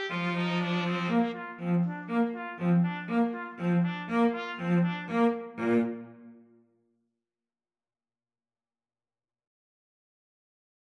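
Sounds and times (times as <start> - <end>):
trumpet in a trumpet-cello duet: 0.0 - 6.3
cello in a trumpet-cello duet: 0.0 - 6.5.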